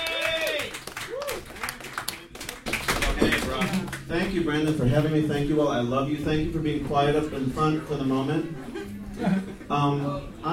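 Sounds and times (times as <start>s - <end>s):
audience clapping for a comedian at a stand-up comedy show: 0.0s - 4.9s
speech: 3.2s - 10.5s.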